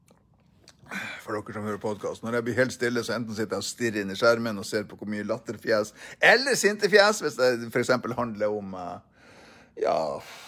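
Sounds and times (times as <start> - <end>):
person drinking: 0.0 - 1.2
speech: 1.3 - 9.1, 9.8 - 10.4.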